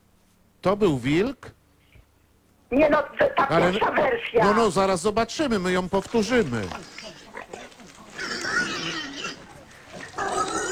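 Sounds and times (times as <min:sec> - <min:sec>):
speech: 0:00.6 - 0:01.6, 0:02.7 - 0:07.2
wild boar grunting: 0:06.4 - 0:10.7.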